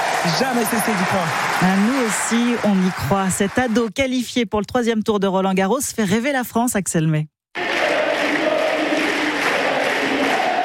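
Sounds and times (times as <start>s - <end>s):
speech: 0.2s - 7.3s
crowd chanting a tennis player's name at Roland-Garros: 7.6s - 10.6s.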